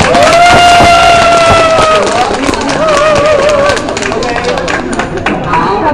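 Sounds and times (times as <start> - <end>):
crowd cheering and whoops: 0.0 - 3.9
audience applause: 0.0 - 5.8.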